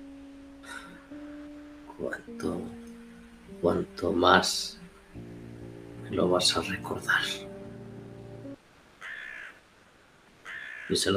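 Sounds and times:
low humming tone: 0:00.0 - 0:08.6
speech: 0:02.0 - 0:02.8, 0:03.5 - 0:05.4, 0:06.1 - 0:07.5, 0:10.9 - 0:11.1
crow cawing: 0:09.0 - 0:09.6, 0:10.4 - 0:11.0.

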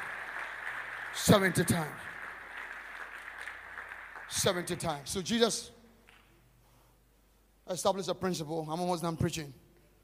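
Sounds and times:
audience clapping: 0:00.0 - 0:06.4
speech: 0:01.2 - 0:02.2, 0:04.3 - 0:05.8, 0:07.7 - 0:09.6.

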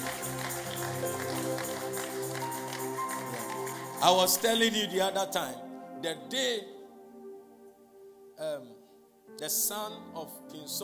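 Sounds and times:
audience clapping: 0:00.0 - 0:04.7
speech: 0:04.0 - 0:06.8, 0:09.4 - 0:10.8.

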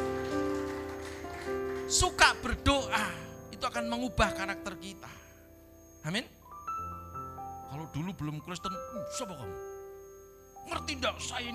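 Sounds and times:
audience applause: 0:00.0 - 0:02.5
speech: 0:01.9 - 0:05.2, 0:06.0 - 0:06.4, 0:07.7 - 0:09.7, 0:10.6 - 0:11.5.

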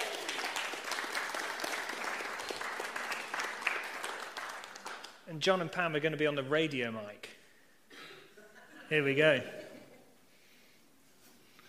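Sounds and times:
round of applause: 0:00.0 - 0:05.2
speech: 0:05.3 - 0:07.4, 0:08.9 - 0:09.6.

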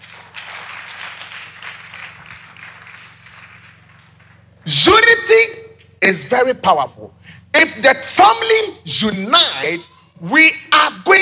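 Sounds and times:
crowd clapping: 0:00.0 - 0:04.7
low constant hum: 0:00.0 - 0:11.2
speech: 0:04.7 - 0:11.2.

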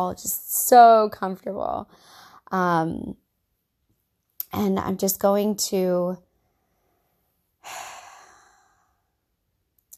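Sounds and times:
speech: 0:00.0 - 0:03.2, 0:04.5 - 0:06.3
slow relaxed exhalation during meditation while sitting up in bed: 0:07.6 - 0:09.1.

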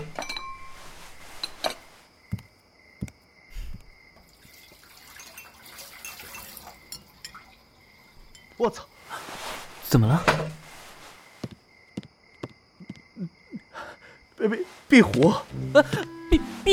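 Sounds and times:
ceramic bowls and chopsticks clinking during washing: 0:00.0 - 0:00.8, 0:05.0 - 0:07.6
running water: 0:04.2 - 0:07.8
water dripping: 0:04.2 - 0:08.6
speech: 0:08.6 - 0:08.9, 0:09.9 - 0:10.6, 0:14.4 - 0:16.7.

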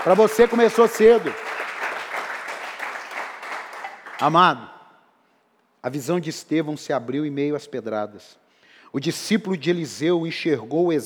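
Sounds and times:
speech: 0:00.0 - 0:01.5, 0:04.2 - 0:04.8, 0:05.8 - 0:11.0
audience applause: 0:00.0 - 0:04.4.

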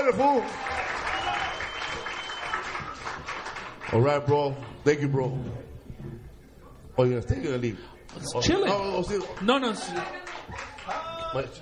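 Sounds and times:
speech: 0:00.0 - 0:00.8, 0:03.9 - 0:06.2, 0:07.0 - 0:10.7, 0:11.3 - 0:11.6
crowd applause: 0:00.0 - 0:04.1, 0:09.0 - 0:11.6.

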